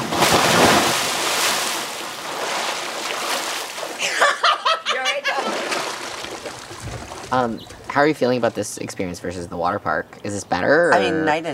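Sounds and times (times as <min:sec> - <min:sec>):
people jumping into a pool splash: 0:00.0 - 0:04.2, 0:05.3 - 0:08.1
water churning: 0:00.0 - 0:04.5, 0:05.2 - 0:08.6
people laughing: 0:04.0 - 0:05.9
speech: 0:07.3 - 0:11.5.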